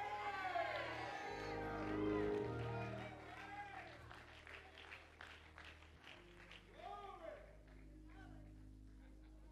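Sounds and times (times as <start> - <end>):
voices whooping and calling out: 0.0 - 4.0
large crowd clapping and shouting: 0.0 - 8.6
sustained musical backdrop: 0.0 - 9.5.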